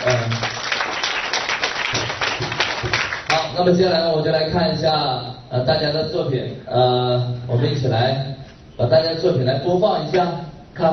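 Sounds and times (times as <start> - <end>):
applause: 0.0 - 3.6
speech: 3.6 - 10.9.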